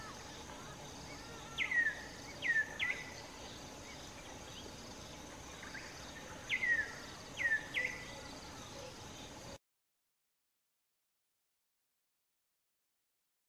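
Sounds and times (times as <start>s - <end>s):
African Emerald Cuckoo calling: 0.0s - 4.7s, 5.3s - 9.1s.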